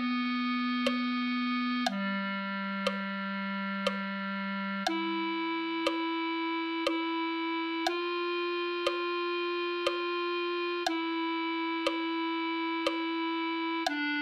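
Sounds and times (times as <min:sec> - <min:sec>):
clarinet melody: 0:00.0 - 0:14.2.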